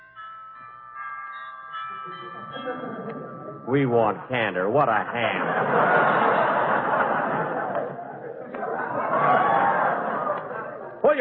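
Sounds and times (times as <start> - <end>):
doorbell ringing: 0.0 - 4.8
speech: 2.0 - 6.6
laughter: 2.2 - 3.7, 4.7 - 11.2.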